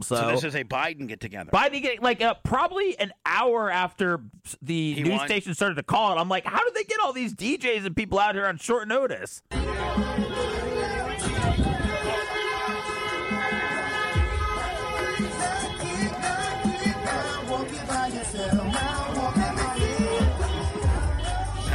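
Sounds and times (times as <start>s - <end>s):
speech: 0.1s - 10.6s
horn-like tones: 9.5s - 21.7s
street celebration crowd cheering and shouting: 9.5s - 21.7s.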